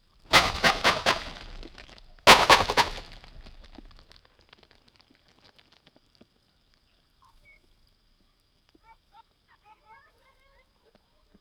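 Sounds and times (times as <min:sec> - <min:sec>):
bear jumping: 0:00.3 - 0:04.0.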